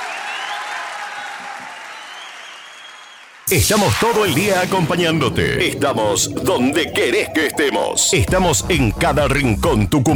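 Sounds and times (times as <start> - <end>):
audience applause: 0.0 - 3.5
speech: 3.5 - 10.1.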